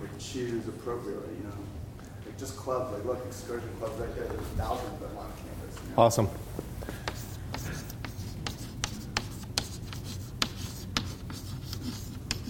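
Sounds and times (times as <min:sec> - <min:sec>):
speech: 0:00.2 - 0:07.0
pen scratching across paper writing notes by hand: 0:07.1 - 0:12.4.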